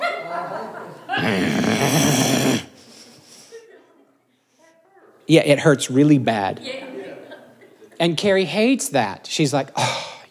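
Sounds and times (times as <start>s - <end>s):
laughter: 0.0s - 4.3s, 6.6s - 8.0s
speech: 0.6s - 2.7s, 5.3s - 6.9s, 8.0s - 10.2s
man growling like an animal: 1.1s - 2.8s.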